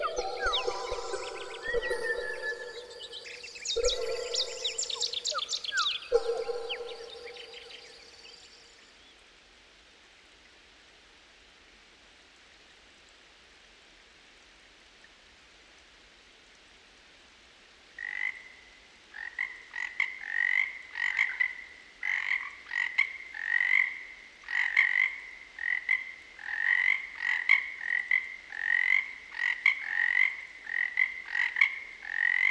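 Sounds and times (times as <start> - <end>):
Cascades frogs croaking at a pond: 0.0 - 8.8, 18.0 - 18.6, 19.2 - 32.4.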